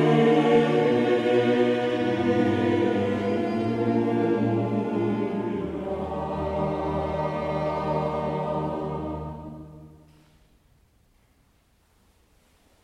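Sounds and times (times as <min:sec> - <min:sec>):
choir singing: 0:00.0 - 0:10.1.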